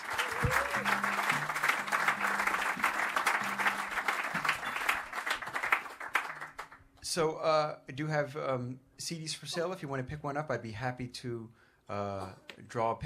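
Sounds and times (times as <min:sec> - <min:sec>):
audience applause: 0:00.0 - 0:06.8
speech: 0:07.1 - 0:13.0.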